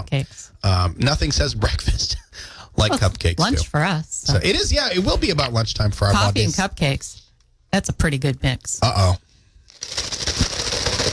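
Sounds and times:
speech: 0.0s - 9.2s
ice cubes rattling in empty coffee cup: 9.8s - 11.1s.

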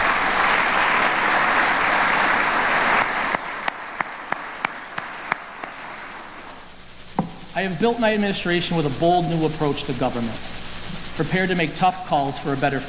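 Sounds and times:
audience applause: 0.0s - 6.6s
speech: 7.6s - 10.5s, 11.2s - 12.8s.

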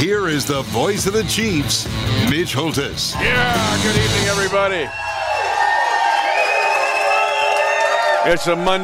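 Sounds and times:
speech: 0.2s - 5.1s, 8.2s - 8.8s
red-clad rowdy crowd cheering at a Chiefs fan show in Hy-Vee Nolan Road: 3.1s - 8.8s.

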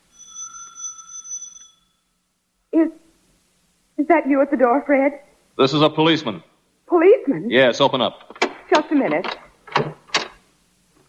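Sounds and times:
electric doorbell ringing: 0.0s - 2.0s
speech: 2.8s - 3.0s, 4.1s - 9.9s.

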